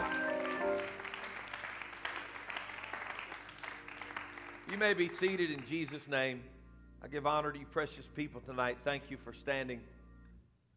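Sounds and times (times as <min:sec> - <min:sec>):
audience applause: 0:00.0 - 0:05.9
speech: 0:04.7 - 0:10.0.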